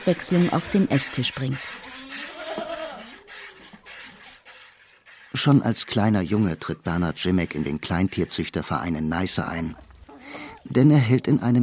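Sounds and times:
speech: 0:00.0 - 0:01.9, 0:05.3 - 0:11.6
goat bleating in abandoned stables: 0:01.6 - 0:04.2.

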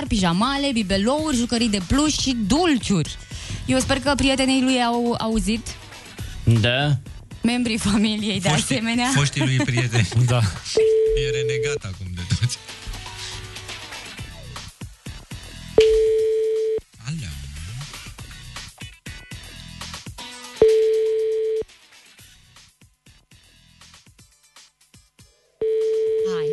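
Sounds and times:
speech: 0:00.0 - 0:05.8, 0:06.5 - 0:12.1
laughter: 0:08.5 - 0:10.8
telephone ringback tone: 0:10.8 - 0:11.8, 0:15.8 - 0:16.8, 0:20.6 - 0:21.6, 0:25.6 - 0:26.5.

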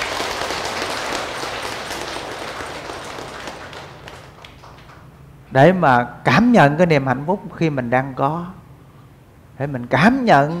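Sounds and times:
audience applause: 0:00.0 - 0:05.1
speech: 0:05.5 - 0:08.6, 0:09.6 - 0:10.5.

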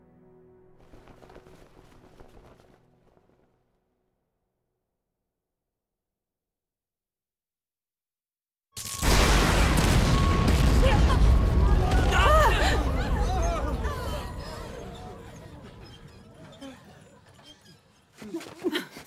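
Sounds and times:
explosion: 0:08.8 - 0:15.0
laughter: 0:10.9 - 0:19.0.

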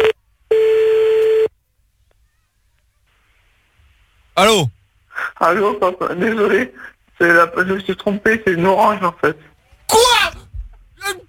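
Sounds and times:
telephone line tone while calling back: 0:00.0 - 0:01.5
speech: 0:04.4 - 0:04.8, 0:05.4 - 0:10.0.

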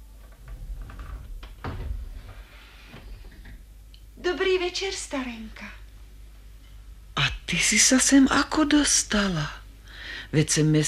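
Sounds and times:
painted door opening: 0:00.2 - 0:03.7
speech: 0:04.3 - 0:05.8, 0:07.5 - 0:09.6, 0:10.3 - 0:10.8.

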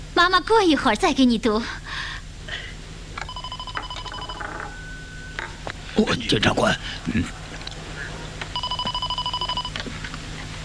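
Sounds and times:
speech: 0:00.2 - 0:01.8, 0:06.0 - 0:07.4
telephone ringing with a rapid electronic trill: 0:03.2 - 0:05.6, 0:08.6 - 0:09.8.

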